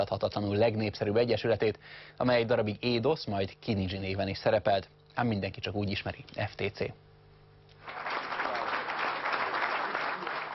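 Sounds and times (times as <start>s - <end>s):
speech: 0.0s - 7.0s
audience applause: 7.8s - 10.5s.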